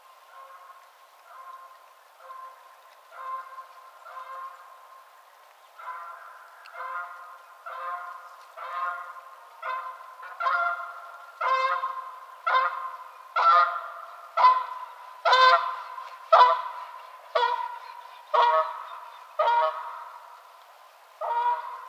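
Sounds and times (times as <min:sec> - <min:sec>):
Canada geese honking: 0:05.8 - 0:20.4, 0:21.2 - 0:21.8.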